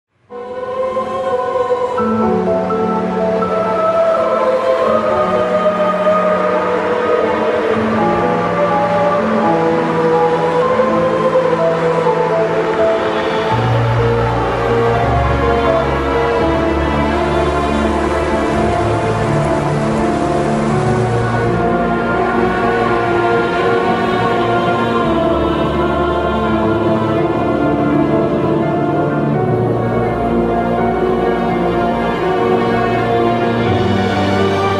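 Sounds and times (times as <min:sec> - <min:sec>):
music: 0:00.1 - 0:34.7.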